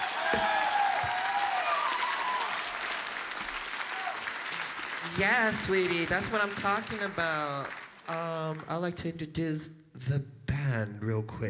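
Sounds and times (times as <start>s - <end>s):
audience applause: 0.0s - 8.8s
speech: 5.2s - 11.4s.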